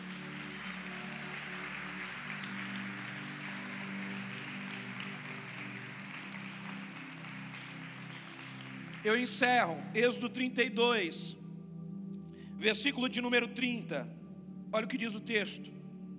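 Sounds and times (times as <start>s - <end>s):
audience applause: 0.0s - 9.8s
speech: 9.0s - 11.4s, 12.6s - 15.8s.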